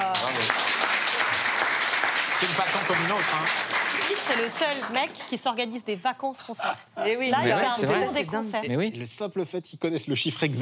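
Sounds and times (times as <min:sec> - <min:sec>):
crowd applause: 0:00.0 - 0:05.4
speech: 0:02.4 - 0:10.6.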